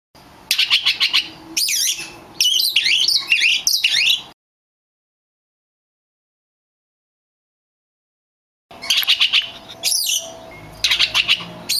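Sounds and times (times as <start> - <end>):
Oriental magpie-robin of the lutung cebu type singing: 0.5 - 4.3, 8.7 - 11.7.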